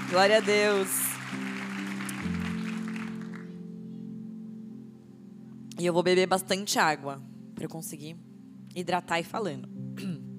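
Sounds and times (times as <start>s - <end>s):
audience applause: 0.0s - 3.6s
speech: 0.1s - 1.5s, 5.8s - 9.8s.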